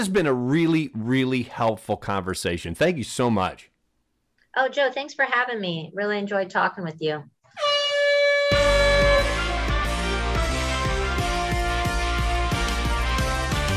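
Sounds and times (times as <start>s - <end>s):
speech: 0.0s - 3.7s, 4.5s - 7.8s
loud buzzer: 7.6s - 11.8s
upbeat music with drumbeat: 8.5s - 13.7s.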